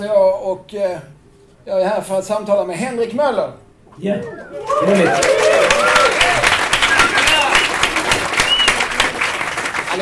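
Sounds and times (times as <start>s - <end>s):
speech: 0.0s - 6.0s
audience applause: 4.3s - 10.0s.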